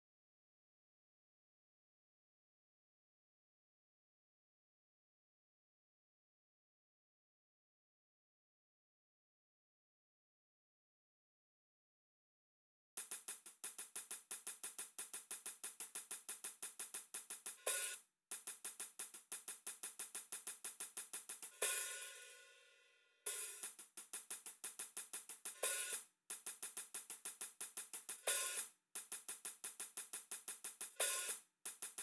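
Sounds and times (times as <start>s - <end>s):
hi-hat: 13.0s - 32.0s.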